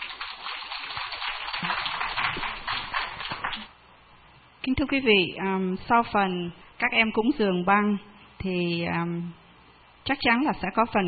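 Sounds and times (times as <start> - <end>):
audience applause: 0.0 - 3.7
speech: 4.7 - 9.4, 10.1 - 11.0.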